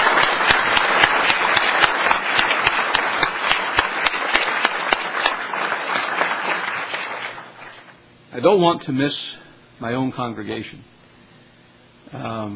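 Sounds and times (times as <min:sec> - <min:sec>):
crowd applauding: 0:00.0 - 0:08.0
speech: 0:08.4 - 0:11.0, 0:12.1 - 0:12.5.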